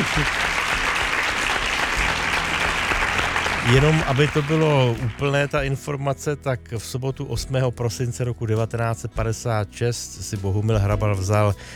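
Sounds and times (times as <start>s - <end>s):
audience applause: 0.0s - 5.5s
speech: 3.7s - 11.7s.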